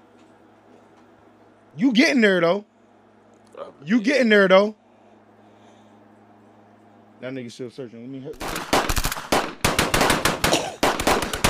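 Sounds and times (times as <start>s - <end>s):
speech: 1.8s - 2.7s, 3.6s - 4.8s, 7.2s - 8.9s
rapid gunfire bursts from a shooting in a played video: 8.4s - 11.4s.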